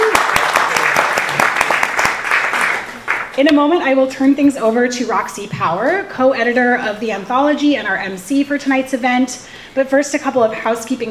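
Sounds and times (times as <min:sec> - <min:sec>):
audience applause: 0:00.0 - 0:03.4
speech: 0:03.4 - 0:11.0.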